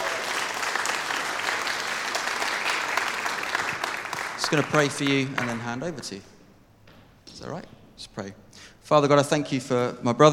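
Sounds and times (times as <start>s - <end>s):
audience applause: 0.0s - 5.9s
speech: 4.5s - 6.3s, 7.4s - 10.3s.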